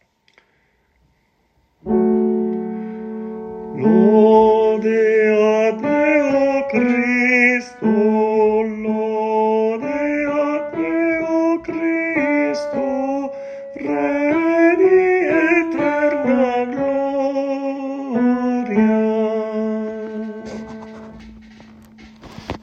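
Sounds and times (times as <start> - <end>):
tenor singing: 3.6 - 20.9.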